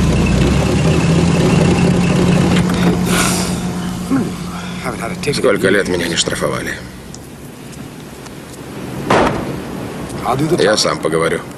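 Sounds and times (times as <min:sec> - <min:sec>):
whining tone: 0:00.0 - 0:08.6
police car engine idling: 0:00.0 - 0:10.1
police car brake hiss: 0:01.9 - 0:10.1
speech: 0:05.2 - 0:07.0, 0:10.3 - 0:11.5.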